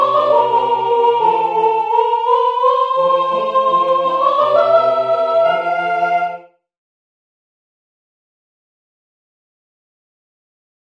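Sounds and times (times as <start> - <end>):
soprano singing: 0.0 - 6.6.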